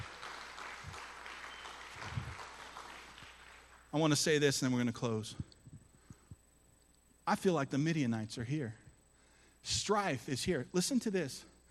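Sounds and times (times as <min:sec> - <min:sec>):
crowd applauding in a large room: 0:00.0 - 0:03.9
speech: 0:03.9 - 0:05.5, 0:07.3 - 0:08.8, 0:09.6 - 0:11.5.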